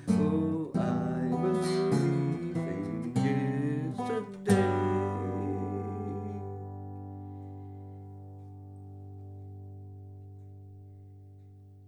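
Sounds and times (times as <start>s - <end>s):
person singing a working tape vocal take: 0.0s - 7.3s.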